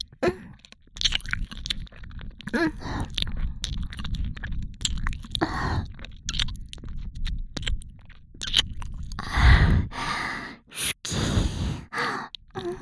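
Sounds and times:
right ear licking: 0.0s - 10.0s, 10.6s - 12.8s
person whispering in the right ear: 10.6s - 12.8s.

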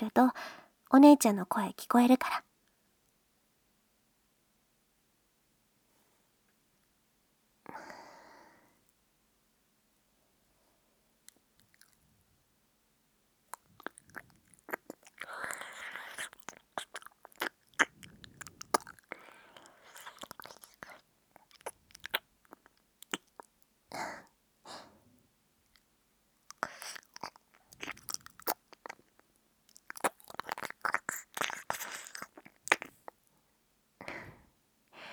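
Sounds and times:
speech: 0.0s - 2.5s
ear licking mouth sounds: 13.5s - 23.6s, 26.5s - 33.2s.

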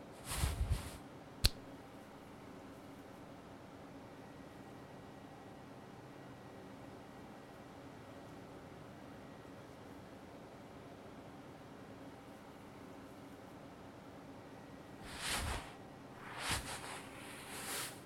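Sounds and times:
mercury massage of face and neck: 0.2s - 1.0s, 15.1s - 18.0s.

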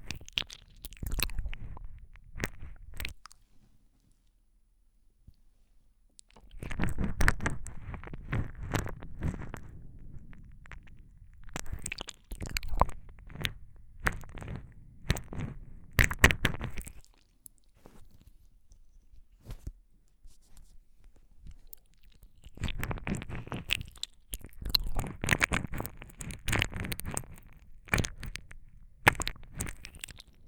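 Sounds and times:
ASMR ear licking sounds: 0.0s - 3.4s, 6.2s - 17.3s, 21.6s - 30.4s.

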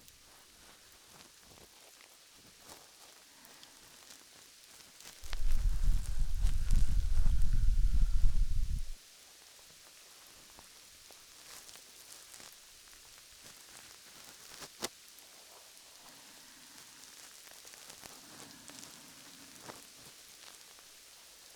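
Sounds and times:
ear cleaning in right ear: 5.2s - 9.0s.

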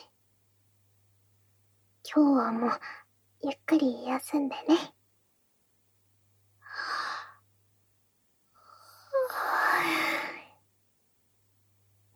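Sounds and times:
speech: 2.1s - 4.9s
short breath and quick double exhale: 8.6s - 10.5s
drawn-out breathy yawn: 8.8s - 10.5s.

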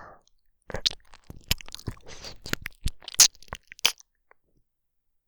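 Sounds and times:
soothing ear licking sounds: 0.7s - 4.0s.

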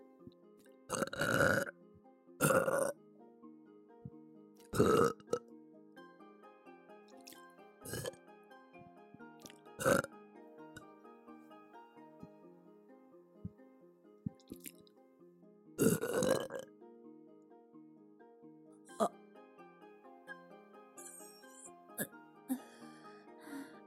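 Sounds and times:
person burping: 0.9s - 1.7s, 2.4s - 3.0s, 4.7s - 5.4s, 7.8s - 8.2s, 9.4s - 10.1s, 15.8s - 16.7s, 18.9s - 19.1s, 22.0s - 22.7s.

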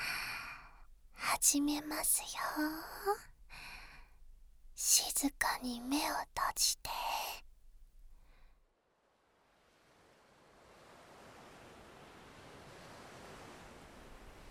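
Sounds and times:
speech: 1.4s - 3.3s, 4.8s - 7.3s
ocean waves: 9.3s - 14.4s.

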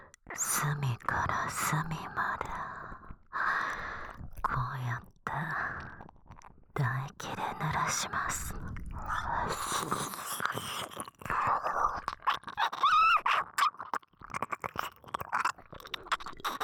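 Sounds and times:
low-voiced expressionless nurse speaking: 0.3s - 2.6s, 4.4s - 5.7s, 6.8s - 9.7s
ear licking: 8.8s - 16.6s
deep kissing: 12.3s - 13.9s.

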